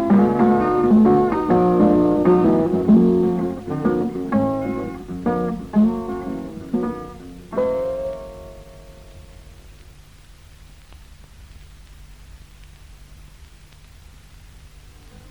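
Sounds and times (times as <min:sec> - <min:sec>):
instrumental music: 0:00.0 - 0:09.7.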